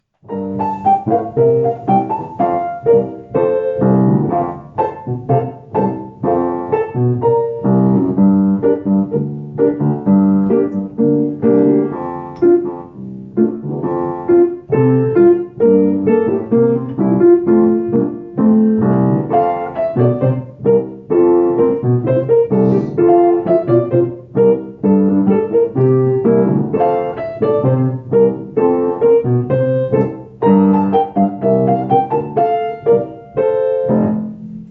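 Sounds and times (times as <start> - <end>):
musical accompaniment: 0.2 - 34.6.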